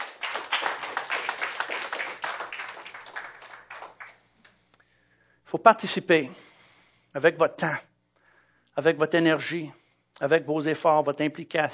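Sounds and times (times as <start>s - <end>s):
audience clapping: 0.0s - 4.3s
speech: 5.5s - 6.4s, 7.1s - 7.9s, 8.8s - 11.7s.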